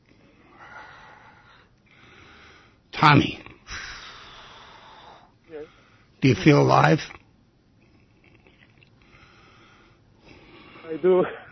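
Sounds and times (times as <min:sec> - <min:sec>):
deep breath: 0:00.2 - 0:02.8, 0:03.7 - 0:06.2, 0:09.0 - 0:10.9
speech: 0:03.0 - 0:03.4, 0:06.2 - 0:07.2, 0:11.0 - 0:11.4.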